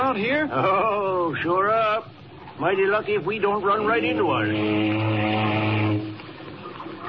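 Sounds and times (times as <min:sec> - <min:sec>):
speech: 0:00.2 - 0:06.1
ship's foghorn blast: 0:03.9 - 0:06.5.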